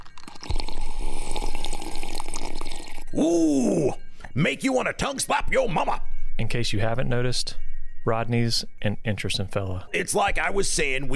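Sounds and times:
person drinking a liquid: 0:00.0 - 0:04.4
speech: 0:03.2 - 0:11.1.

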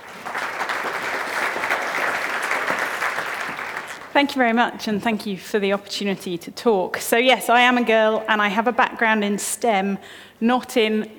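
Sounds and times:
audience applause at a law school talk welcoming a speaker: 0:00.0 - 0:04.2
speech: 0:04.2 - 0:11.1.

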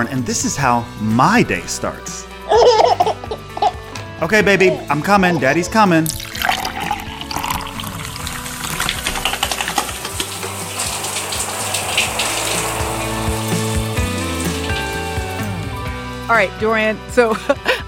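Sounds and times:
speech: 0:00.0 - 0:02.9, 0:04.2 - 0:06.2, 0:16.4 - 0:17.8
water running and pouring: 0:04.7 - 0:16.2.

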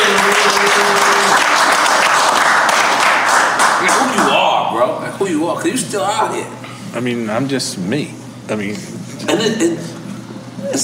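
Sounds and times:
live show audience clapping and cheering for a music artist: 0:00.0 - 0:04.5
speech: 0:05.2 - 0:10.0.

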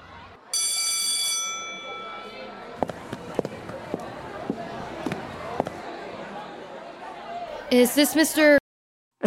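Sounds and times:
footsteps: 0:02.7 - 0:05.9
speech: 0:07.7 - 0:08.6.

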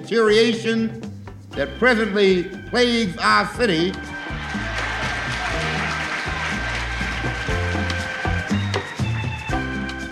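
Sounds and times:
speech: 0:00.0 - 0:04.1
crowd clapping after a speech: 0:03.8 - 0:10.1.

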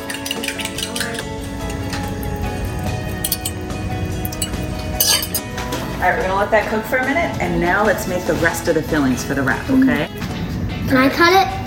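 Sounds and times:
utensil clinking against cookware while making scrambled eggs: 0:00.0 - 0:05.7
steady low kitchen background: 0:00.0 - 0:11.6
speech: 0:06.0 - 0:10.2, 0:10.9 - 0:11.6.

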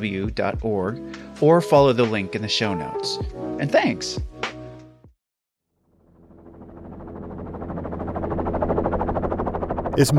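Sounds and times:
speech: 0:00.0 - 0:04.3, 0:10.0 - 0:10.1
helicopter lifting off in snow: 0:05.7 - 0:10.1.

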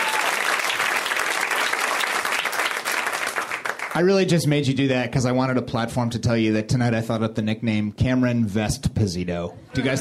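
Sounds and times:
audience applause: 0:00.0 - 0:04.0
speech: 0:04.0 - 0:10.0.

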